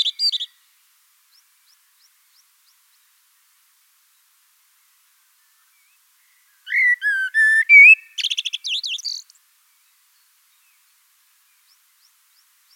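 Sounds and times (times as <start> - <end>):
blackbird singing in Wiesloch: 0.0 - 0.6, 5.7 - 9.3.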